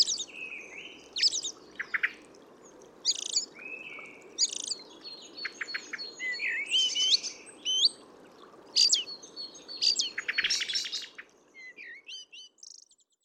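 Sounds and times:
low steady hiss: 0.0s - 13.0s
Eurasian blackbird singing whistles and twitters: 3.1s - 3.5s, 4.4s - 4.8s, 5.4s - 8.0s, 8.8s - 11.0s, 11.6s - 12.9s.

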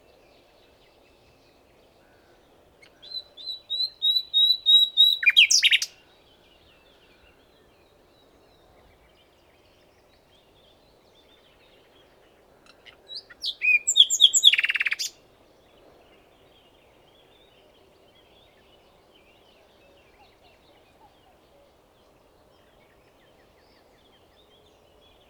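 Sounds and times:
common nightingale song: 2.8s - 6.0s, 12.7s - 15.2s.

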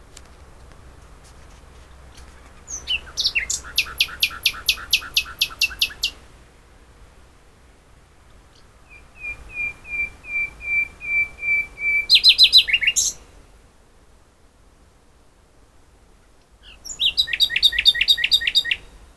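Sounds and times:
common nightingale singing: 2.1s - 6.2s, 8.5s - 13.2s, 16.6s - 18.9s.

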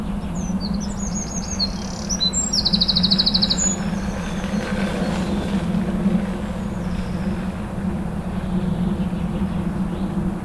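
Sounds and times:
Eurasian wren song: 0.2s - 10.3s.

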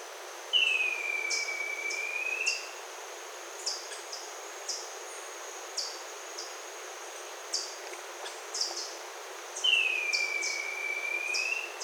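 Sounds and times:
bird whistle: 0.6s - 2.6s, 9.6s - 11.7s.

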